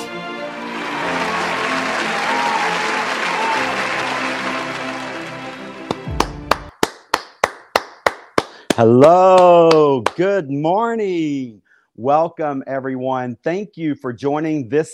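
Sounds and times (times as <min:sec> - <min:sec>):
audience applause welcoming a CEO at a corporate celebration: 0:00.5 - 0:10.3
speech: 0:08.8 - 0:14.9.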